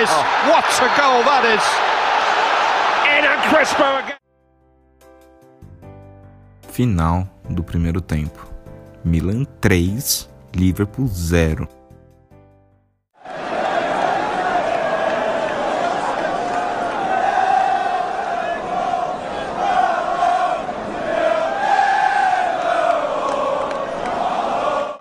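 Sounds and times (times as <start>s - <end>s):
speech: 0.1s - 1.9s, 3.2s - 4.2s, 6.8s - 11.8s
football fans singing in stadium: 13.2s - 25.0s.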